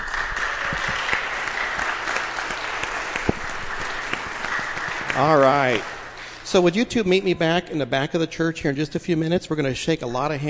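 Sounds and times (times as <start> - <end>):
audience applause: 0.0 - 6.6
speech: 5.2 - 10.4.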